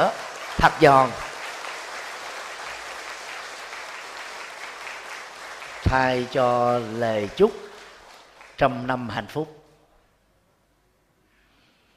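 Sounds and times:
speech: 0:00.0 - 0:01.2, 0:05.9 - 0:07.7, 0:08.6 - 0:09.6
audience applause: 0:00.0 - 0:09.0.

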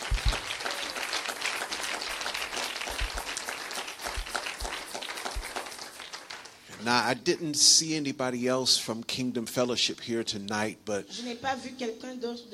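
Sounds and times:
audience applauding: 0:00.0 - 0:06.6
speech: 0:06.8 - 0:12.5.

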